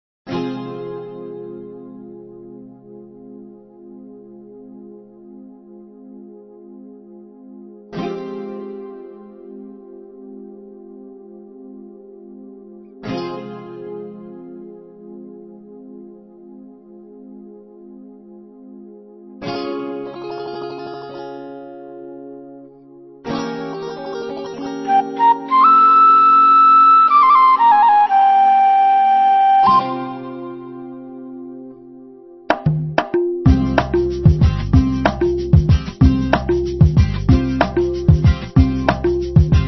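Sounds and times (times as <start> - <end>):
Tamil karaoke music: 23.3 - 31.2, 32.6 - 39.6.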